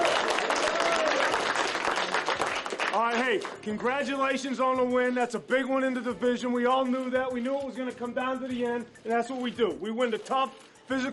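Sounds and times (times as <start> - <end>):
NFL team applauding in the locker room after a win: 0.0 - 4.2
speech: 3.3 - 11.1.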